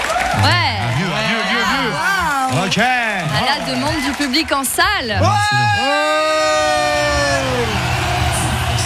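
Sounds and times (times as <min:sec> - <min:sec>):
crowd cheering wildly sound effect: 0:00.0 - 0:08.8
speech: 0:02.6 - 0:07.8.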